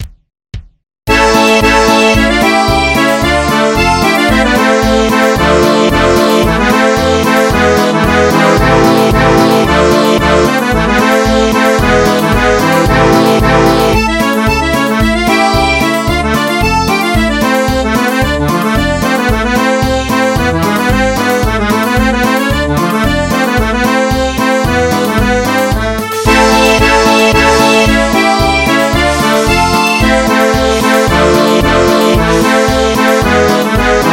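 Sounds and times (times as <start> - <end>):
orchestral dance music: 1.1 - 34.1.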